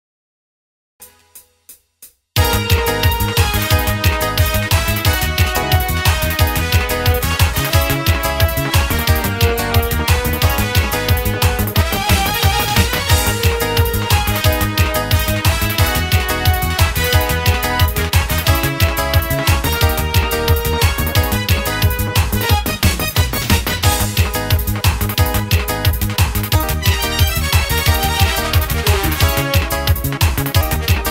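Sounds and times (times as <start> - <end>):
Turkmen songs karaoke backing track: 2.4 - 31.0.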